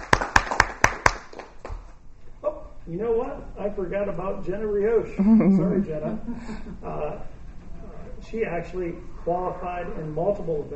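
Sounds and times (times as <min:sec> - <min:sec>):
clapping for school indoor track records: 0:00.0 - 0:01.9
speech: 0:02.9 - 0:07.3, 0:08.3 - 0:10.7
laughter: 0:05.2 - 0:07.3.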